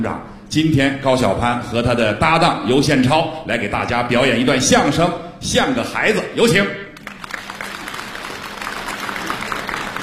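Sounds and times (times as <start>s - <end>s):
speech: 0.0s - 6.8s
audience applause at a live crosstalk comedy show in Beijing: 7.0s - 10.0s.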